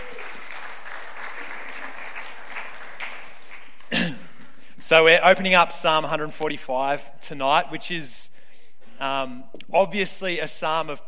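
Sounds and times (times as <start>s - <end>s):
audience applause: 0.0s - 4.0s
speech: 4.9s - 8.2s, 9.0s - 11.0s.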